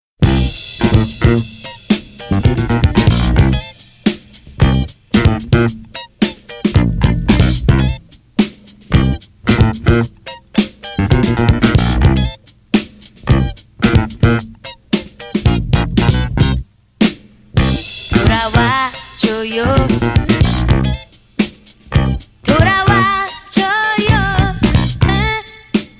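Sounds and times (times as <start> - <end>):
Korean soul music: 0.2 - 16.6, 17.6 - 25.9.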